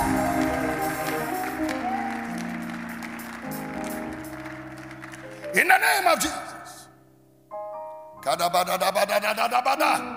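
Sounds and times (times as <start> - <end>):
audience clapping: 0.0 - 6.6
speech: 5.6 - 6.4, 8.2 - 10.1.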